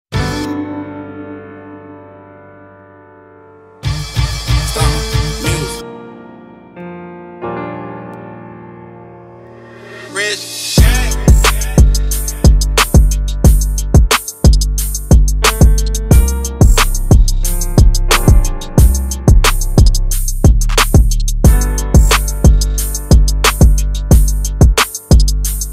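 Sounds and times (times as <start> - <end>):
instrumental music: 0.1 - 25.7.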